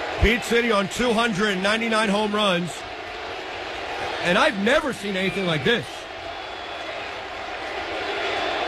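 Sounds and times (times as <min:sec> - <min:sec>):
stadium crowd cheering at Citi Field: 0:00.0 - 0:08.6
speech: 0:00.2 - 0:02.8, 0:04.2 - 0:05.9.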